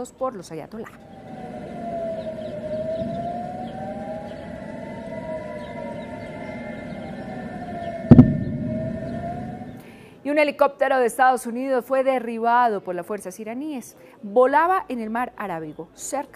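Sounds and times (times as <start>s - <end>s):
speech: 0.0s - 1.5s, 10.3s - 16.3s
air raid sirens in Jerusalem: 0.8s - 10.2s.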